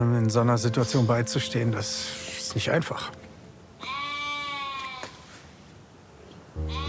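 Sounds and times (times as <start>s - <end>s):
speech: 0.0s - 3.2s
sheep bleating: 3.8s - 5.2s, 6.6s - 6.8s.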